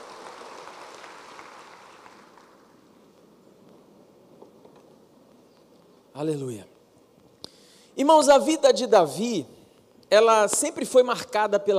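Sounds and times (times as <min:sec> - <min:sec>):
audience applause: 0:00.0 - 0:03.0
speech: 0:06.2 - 0:06.7, 0:08.0 - 0:11.7.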